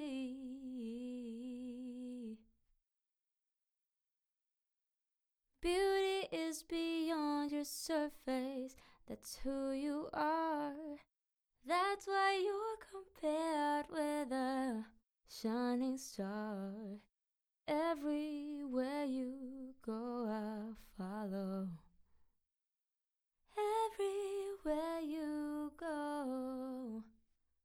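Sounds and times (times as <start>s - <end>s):
a cappella pop singing in C major: 0.0s - 2.4s, 5.6s - 17.1s, 17.7s - 21.9s, 23.5s - 27.1s.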